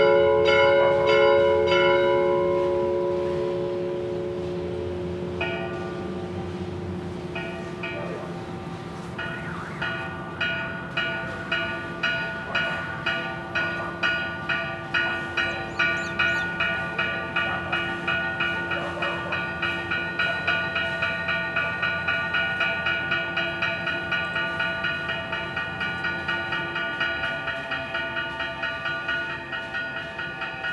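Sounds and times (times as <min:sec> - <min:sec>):
cathedral bells ringing in Ayaviri: 0:00.0 - 0:30.7.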